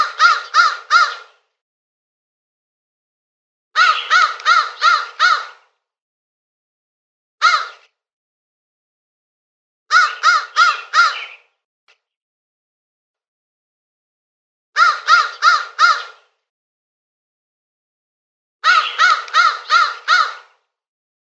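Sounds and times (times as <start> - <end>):
crow uttering rasping caws: 0.0 - 1.3, 3.8 - 5.7, 7.4 - 7.8, 9.9 - 11.4, 14.8 - 16.2, 18.6 - 20.6.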